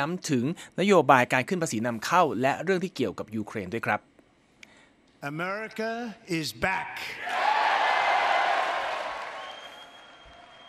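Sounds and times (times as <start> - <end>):
speech: 0.0 - 4.1, 5.2 - 7.5
politicians cheering and applauding: 7.2 - 10.6.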